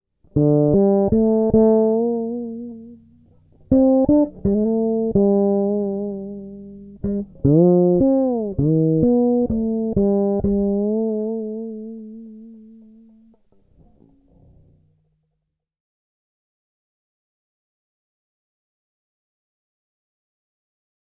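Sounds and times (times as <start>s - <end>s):
Kuma fretless five-string bass with humbucker, tone control closed: 0.3s - 14.9s.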